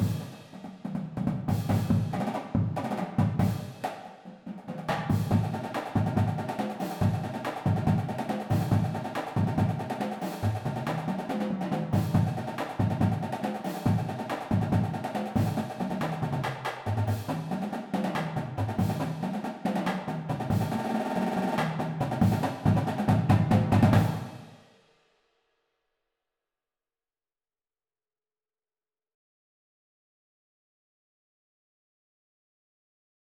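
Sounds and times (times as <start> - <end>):
full drumline playing: 0.0 - 3.9, 4.6 - 24.4.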